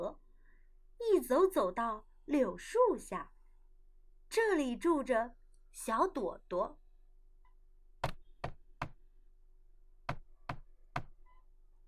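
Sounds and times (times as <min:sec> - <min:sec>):
speech: 0:00.0 - 0:00.2, 0:01.0 - 0:03.3, 0:04.3 - 0:06.8
knocking on a door: 0:08.0 - 0:09.0, 0:10.1 - 0:11.2.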